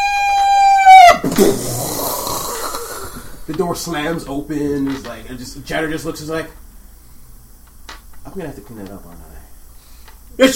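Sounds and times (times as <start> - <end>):
voice imitating a squeak: 0.0 - 2.9
rough breathy sputter: 1.2 - 3.5
speech: 1.4 - 1.8, 3.5 - 6.6, 8.4 - 9.4, 10.4 - 10.5.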